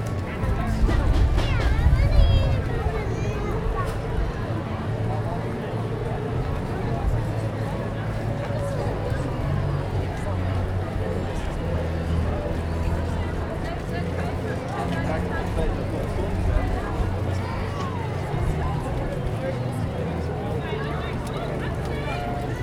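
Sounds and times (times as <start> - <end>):
crowds talking at an outdoor Christmas market: 0.0 - 22.6.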